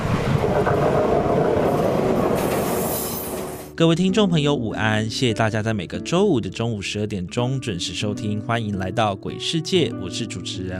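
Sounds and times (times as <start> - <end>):
train rumbling along railway tracks: 0.0 - 3.8
speech: 3.8 - 10.7.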